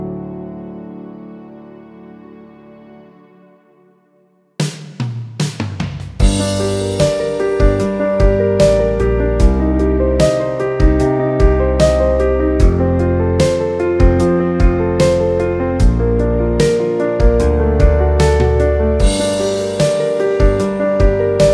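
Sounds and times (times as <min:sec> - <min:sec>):
dramatic drum composition: 0:04.6 - 0:21.5.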